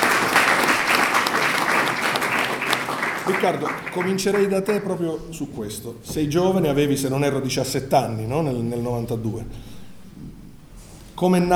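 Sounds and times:
audience applause at a book presentation: 0.0 - 7.4
speech: 3.3 - 9.7, 11.2 - 11.5.

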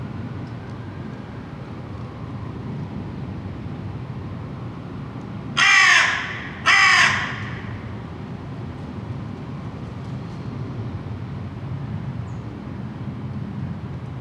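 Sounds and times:
crow cawing: 5.6 - 8.1.

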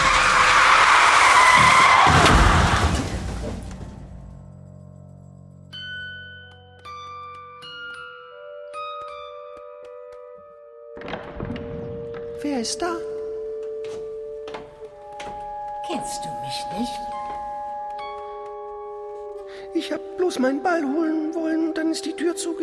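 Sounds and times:
car skidding with tires squealing: 0.0 - 2.8
speech: 12.6 - 13.1, 16.1 - 17.1, 19.8 - 22.6.

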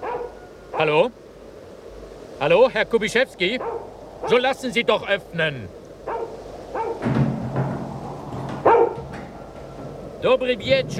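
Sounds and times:
Great Dane barking: 0.0 - 1.0, 3.6 - 4.4, 6.0 - 7.0, 8.6 - 9.2
speech: 0.8 - 1.2, 2.4 - 5.8, 10.2 - 10.9.

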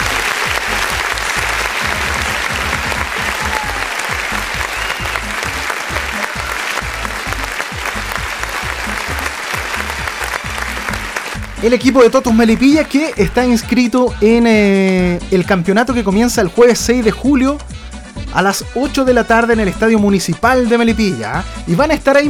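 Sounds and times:
applause: 0.0 - 13.7
speech: 11.6 - 17.7, 18.3 - 22.2.

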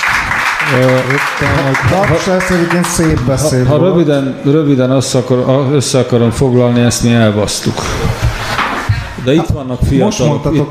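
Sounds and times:
applause from an audience: 0.0 - 3.6
speech: 0.7 - 8.3, 9.2 - 10.7.

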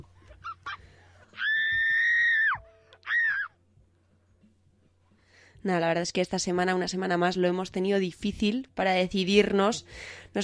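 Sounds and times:
scream: 1.4 - 3.6
speech: 5.6 - 10.4.

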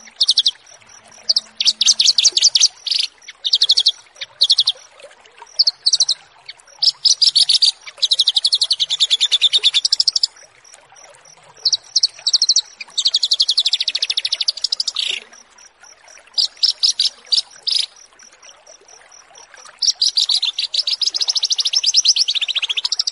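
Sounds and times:
bush lark song: 0.0 - 4.9, 5.5 - 10.3, 11.6 - 15.4, 16.4 - 18.0, 19.8 - 23.1.

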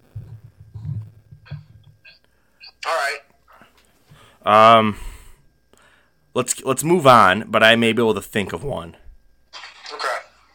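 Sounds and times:
mobile phone noises: 1.4 - 3.2, 9.6 - 10.5
speech: 2.8 - 3.3, 4.4 - 5.1, 6.4 - 9.0.

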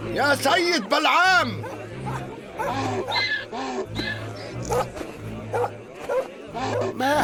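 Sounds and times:
speech: 0.2 - 1.7, 2.6 - 7.2
donkeys braying: 1.3 - 7.2
dogs barking: 1.4 - 7.0.

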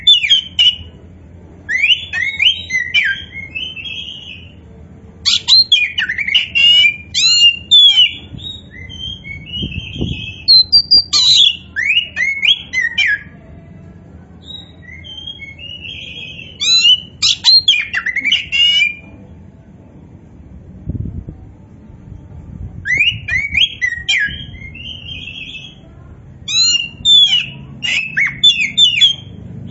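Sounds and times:
Oriental magpie-robin whistling song: 0.0 - 0.9, 1.7 - 4.6, 5.3 - 13.3, 14.4 - 19.1, 22.9 - 25.8, 26.5 - 29.6.

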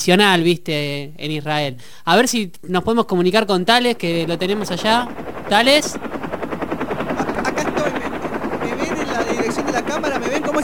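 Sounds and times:
speech: 0.0 - 6.2
helicopter rotor chopping: 2.9 - 10.6.

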